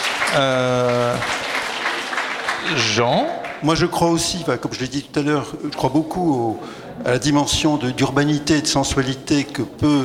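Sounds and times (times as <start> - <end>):
audience applause at a public talk: 0.0 - 3.9
speech: 0.4 - 1.4, 2.6 - 10.0.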